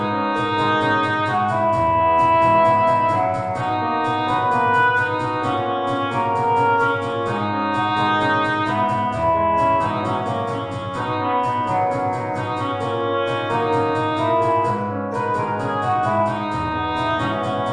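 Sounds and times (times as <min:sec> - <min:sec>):
MIDI hand drum: 0:00.0 - 0:17.7
MIDI piano: 0:00.0 - 0:17.7.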